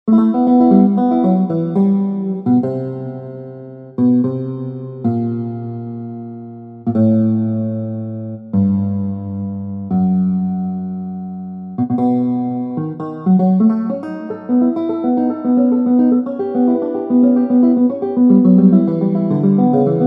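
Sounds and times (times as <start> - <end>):
guitar: 0.0 - 20.0.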